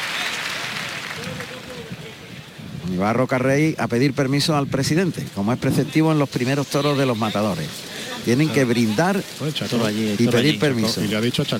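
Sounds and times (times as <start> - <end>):
bullring crowd ovation at the Maestranza de Sevilla: 0.0 - 2.3
speech: 2.9 - 11.5.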